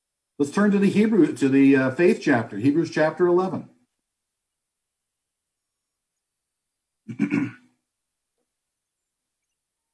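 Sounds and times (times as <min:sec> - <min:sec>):
speech: 0:00.4 - 0:03.7
person coughing: 0:07.1 - 0:07.6.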